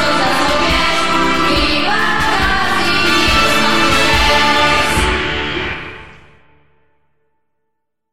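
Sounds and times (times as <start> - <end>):
school hymn: 0.0 - 6.4.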